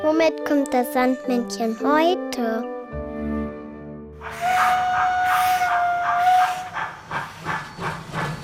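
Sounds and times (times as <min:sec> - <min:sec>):
speech: 0:00.1 - 0:02.8
steam locomotive whistle: 0:04.2 - 0:08.0
steam locomotive chuffing: 0:04.2 - 0:08.4.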